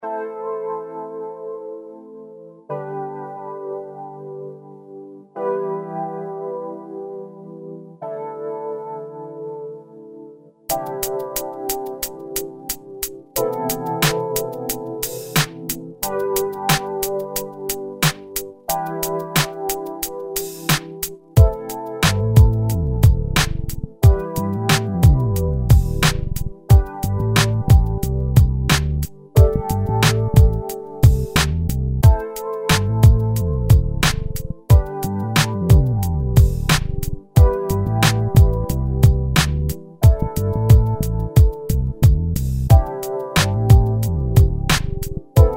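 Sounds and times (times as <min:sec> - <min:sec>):
instrumental beat: 0:10.7 - 0:45.5.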